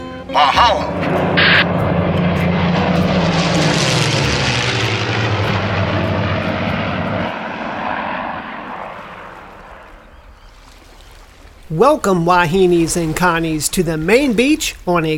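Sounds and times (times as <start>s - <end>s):
propeller airplane landing with droning engine: 0.0s - 11.0s
speech: 0.3s - 1.8s, 11.7s - 15.1s.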